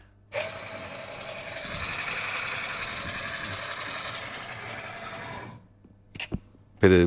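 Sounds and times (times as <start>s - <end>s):
espresso grinder in a coffee machine grinding beans: 0.3s - 5.7s.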